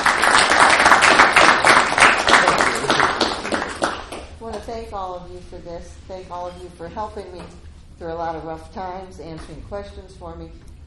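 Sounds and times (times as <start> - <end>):
audience applause: 0.0 - 4.3
speech: 5.2 - 10.7.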